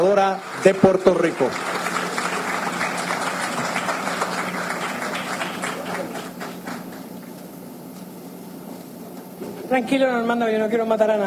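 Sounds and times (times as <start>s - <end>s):
speech: 0.0s - 1.8s, 9.8s - 11.2s
audience applause: 0.0s - 7.2s.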